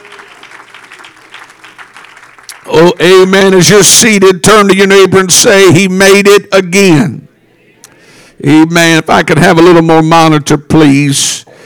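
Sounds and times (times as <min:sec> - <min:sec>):
audience clapping hands: 0:00.0 - 0:03.6
speech: 0:02.7 - 0:07.2, 0:08.4 - 0:11.6.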